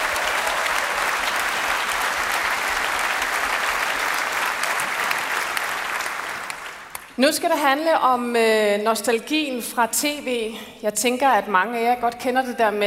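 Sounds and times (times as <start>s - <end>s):
audience applause: 0.0s - 7.0s
speech: 7.2s - 12.8s.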